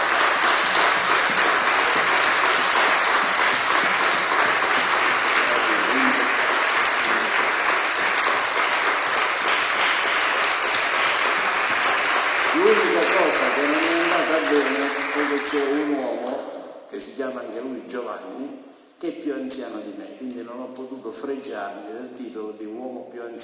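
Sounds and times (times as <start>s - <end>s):
applause: 0.0s - 16.4s
speech: 15.4s - 16.3s, 16.9s - 23.4s.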